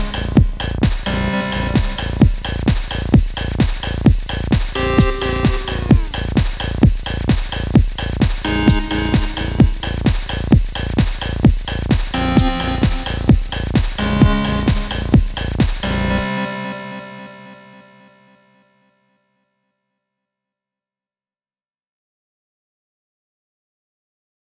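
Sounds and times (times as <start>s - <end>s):
noise maker: 0.0s - 17.5s.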